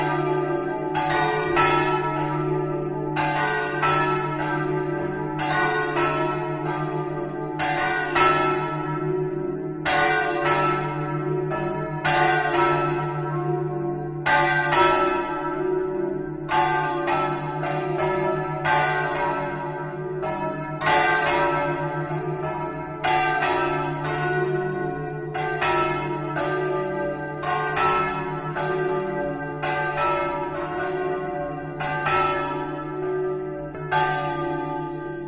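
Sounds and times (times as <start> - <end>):
bells ringing: 0.0 - 35.2.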